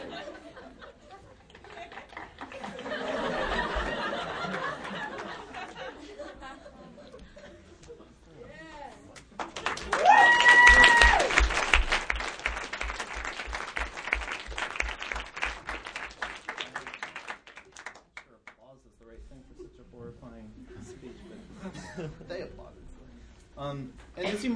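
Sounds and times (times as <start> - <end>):
audience chuckling: 0.0 - 8.1
audience applause: 1.6 - 5.7, 9.4 - 18.3.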